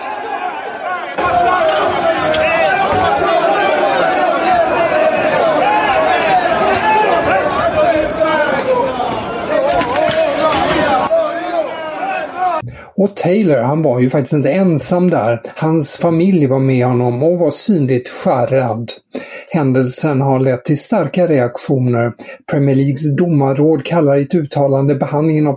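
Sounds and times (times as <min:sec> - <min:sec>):
Roma football fans shouting insults at airport: 0:00.0 - 0:12.6
speech: 0:13.1 - 0:25.5.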